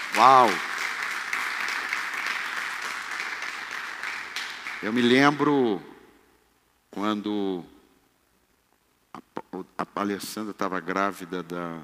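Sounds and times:
audience applause: 0.0s - 5.3s
speech: 0.1s - 0.7s, 4.8s - 5.9s, 6.9s - 7.8s, 9.5s - 11.8s.

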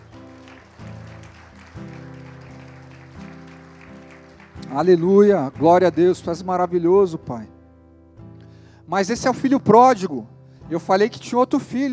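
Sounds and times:
audience applause: 0.0s - 5.3s
speech: 4.7s - 7.6s, 8.9s - 11.9s.

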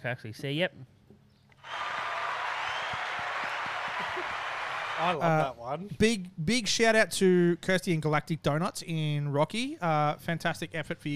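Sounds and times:
speech: 0.0s - 1.0s, 5.0s - 11.1s
applause: 1.6s - 5.2s.

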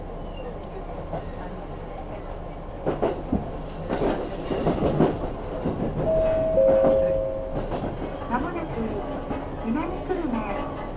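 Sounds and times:
steady low rumble of a Kyudai Main Line train: 0.0s - 10.9s
two-note chime: 6.1s - 8.1s.

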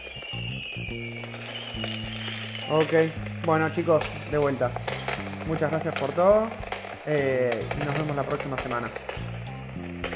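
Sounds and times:
fireworks going off outside: 0.0s - 10.1s
speech: 0.9s - 1.2s, 2.7s - 4.9s, 5.5s - 9.3s
low droning hum: 2.9s - 7.1s.

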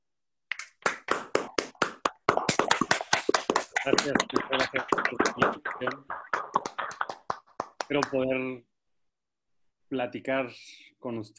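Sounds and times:
audience applause: 0.8s - 8.2s
speech: 3.9s - 6.2s, 7.9s - 8.7s, 9.9s - 11.3s.

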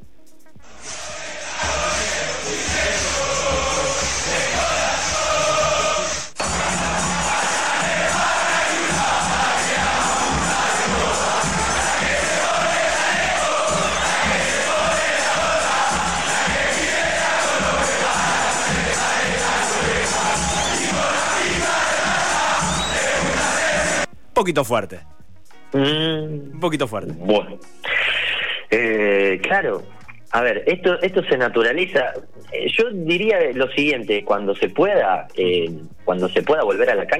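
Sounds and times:
football fans chanting in stadium: 0.6s - 24.1s
speech: 24.5s - 25.1s, 25.7s - 27.8s, 28.7s - 37.1s.

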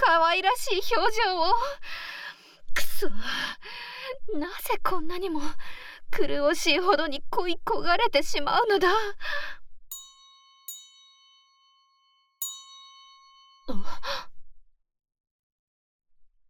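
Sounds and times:
speech: 0.3s - 2.0s, 2.8s - 9.6s, 13.7s - 14.3s
magic bell ringing: 9.9s - 13.8s.

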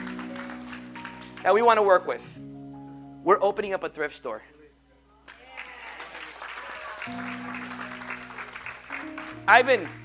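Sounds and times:
church audience applause: 0.0s - 1.6s, 5.3s - 10.0s
speech: 1.4s - 2.5s, 3.2s - 4.6s, 7.1s - 7.6s, 9.5s - 10.0s.

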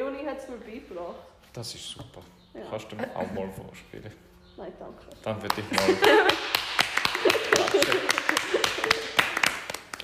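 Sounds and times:
speech: 0.4s - 6.6s, 7.2s - 9.0s
small group hand clapping: 5.3s - 10.0s
laughter: 5.6s - 9.4s.

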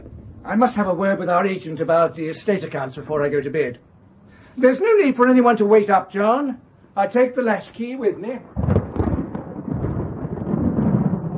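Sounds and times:
clap of thunder: 0.0s - 2.8s, 8.1s - 11.3s
speech: 0.4s - 3.9s, 4.6s - 8.6s.

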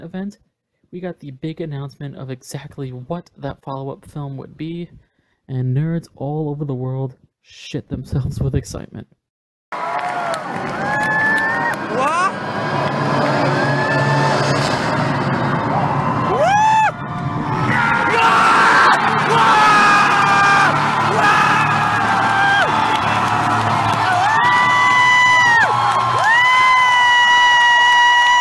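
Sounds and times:
speech: 0.0s - 9.9s
convention crowd cheering and yelling: 9.7s - 28.3s.

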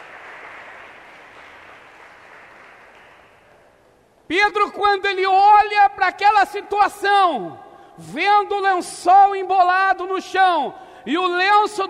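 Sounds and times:
applause: 0.0s - 3.7s
speech: 4.3s - 11.8s.

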